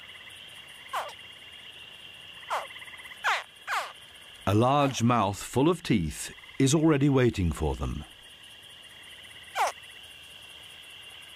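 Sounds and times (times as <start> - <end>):
high insect-like hum: 0.0 - 11.3
baby crocodiles chirping: 0.9 - 1.2, 2.4 - 4.0, 9.5 - 9.8
speech: 4.5 - 8.1.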